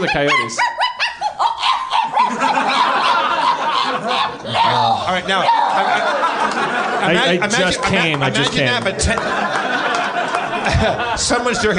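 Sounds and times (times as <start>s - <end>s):
speech: 0.0s - 0.8s, 4.4s - 9.7s, 10.6s - 11.7s
person imitating a small dog yelping in terror: 0.0s - 6.1s
laughter: 1.2s - 11.7s.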